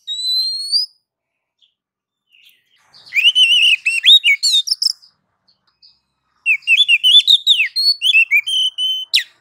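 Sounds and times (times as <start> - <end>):
female oriental magpie-robin calling to a male: 0.0 - 1.0, 2.3 - 5.1, 6.4 - 9.4.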